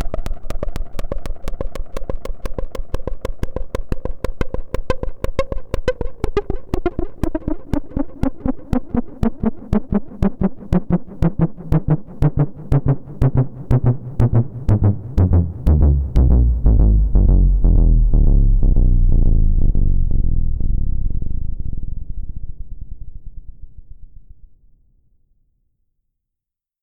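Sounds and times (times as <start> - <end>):
Novation Bass Station II synthesizer bass tones: 3.3 - 21.6.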